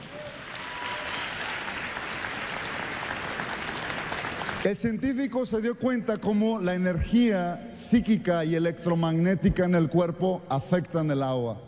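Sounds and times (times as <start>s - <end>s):
audience applause: 0.0s - 4.7s
speech: 4.6s - 11.6s.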